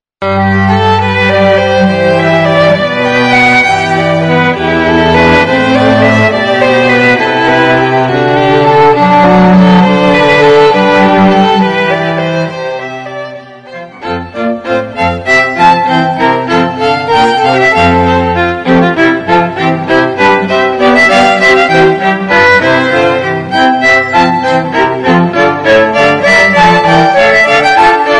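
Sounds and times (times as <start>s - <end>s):
classical music: 0.2s - 28.1s.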